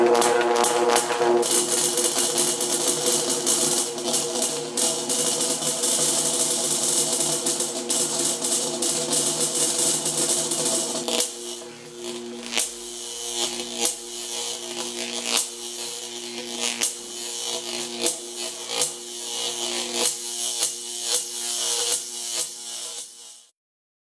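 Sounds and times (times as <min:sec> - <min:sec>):
tesla coil: 0:00.0 - 0:23.5.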